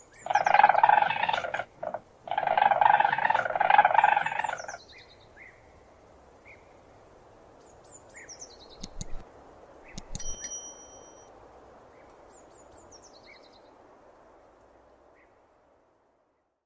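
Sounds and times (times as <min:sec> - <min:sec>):
weasel calling: 0:00.1 - 0:04.8.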